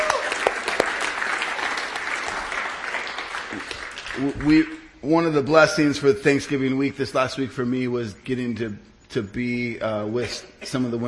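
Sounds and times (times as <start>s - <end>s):
audience applause: 0.0s - 4.7s
speech: 4.2s - 11.0s.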